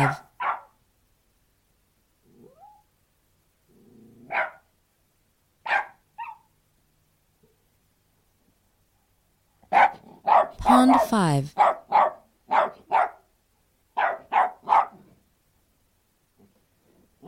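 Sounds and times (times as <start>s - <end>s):
speech: 0.0s - 0.2s, 10.8s - 11.7s
Australian terrier barking: 0.0s - 0.8s, 4.3s - 4.7s, 5.6s - 6.5s, 9.7s - 11.0s, 11.6s - 13.3s, 14.0s - 15.1s
Australian terrier growling: 3.7s - 4.3s.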